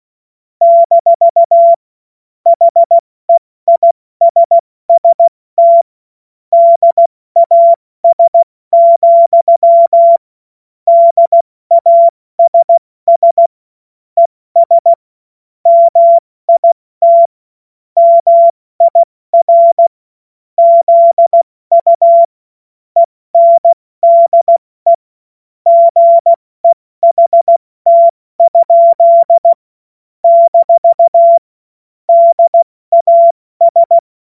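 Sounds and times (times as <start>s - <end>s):
CW Morse code beeps: 0.6s - 1.8s, 2.5s - 5.9s, 6.5s - 10.2s, 10.9s - 13.5s, 14.2s - 15.0s, 15.7s - 17.3s, 18.0s - 19.9s, 20.6s - 22.3s, 23.0s - 25.0s, 25.7s - 29.6s, 30.2s - 31.4s, 32.1s - 34.0s.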